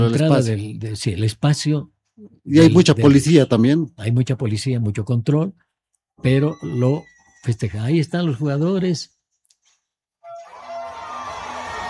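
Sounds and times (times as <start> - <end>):
speech: 0.0 - 5.6, 6.2 - 9.1
crowd applauding and shouting: 10.3 - 11.8.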